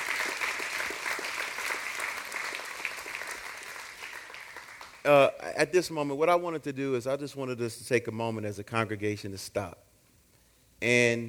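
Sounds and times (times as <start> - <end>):
audience applause: 0.0 - 5.0
speech: 5.0 - 9.8, 10.8 - 11.2.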